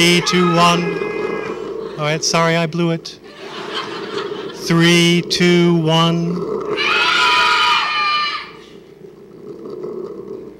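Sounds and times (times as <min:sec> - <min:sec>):
speech: 0:00.0 - 0:01.1, 0:02.0 - 0:03.2, 0:04.6 - 0:06.8
crowd screaming: 0:00.0 - 0:02.0, 0:06.7 - 0:08.8
laughter: 0:03.2 - 0:04.7.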